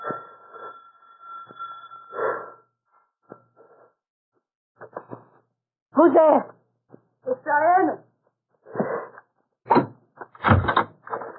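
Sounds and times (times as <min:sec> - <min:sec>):
speech: 0:06.0 - 0:06.6, 0:07.5 - 0:08.0
heavy clunks of door: 0:09.7 - 0:11.0
door creaking as it swings open: 0:09.7 - 0:11.3.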